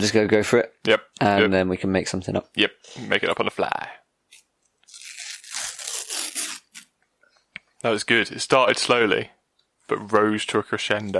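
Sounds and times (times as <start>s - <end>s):
speech: 0.0s - 4.0s, 7.8s - 11.1s
sticker packet being torn open: 4.3s - 6.9s.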